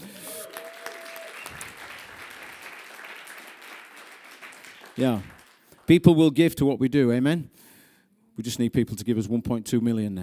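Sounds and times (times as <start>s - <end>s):
audience cheering: 0.0s - 5.6s
speech: 5.0s - 5.3s, 5.9s - 7.6s, 8.4s - 10.2s.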